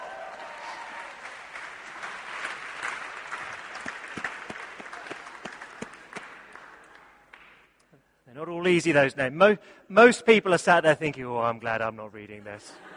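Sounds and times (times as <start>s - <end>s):
round of applause: 0.0s - 7.7s
speech: 8.6s - 12.9s.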